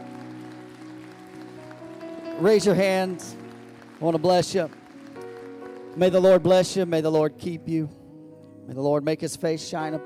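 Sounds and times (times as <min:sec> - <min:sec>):
audience hand clapping: 0:00.0 - 0:06.8
speech: 0:02.4 - 0:03.4, 0:04.0 - 0:04.8, 0:06.0 - 0:08.0, 0:08.7 - 0:10.0.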